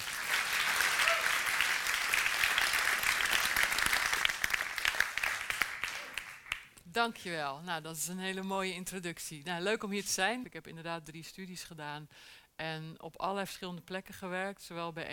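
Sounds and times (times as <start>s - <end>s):
audience applause: 0.0s - 6.6s
speech: 7.0s - 15.1s.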